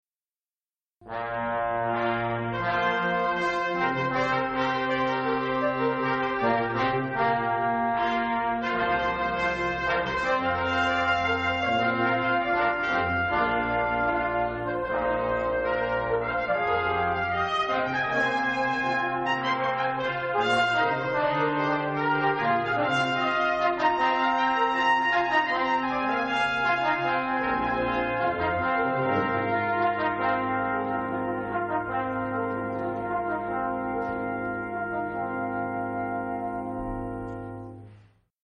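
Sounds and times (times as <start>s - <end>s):
brass fanfare: 1.0s - 38.1s.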